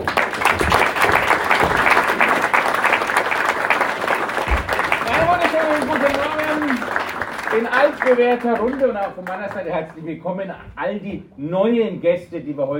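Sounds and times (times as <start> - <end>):
audience applause: 0.0 - 10.0
speech: 7.6 - 12.7.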